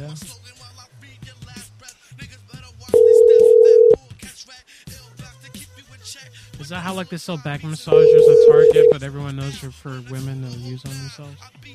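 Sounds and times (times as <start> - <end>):
telephone tone while a call is being placed: 3.0 - 4.0, 7.9 - 9.0
speech: 6.7 - 11.7.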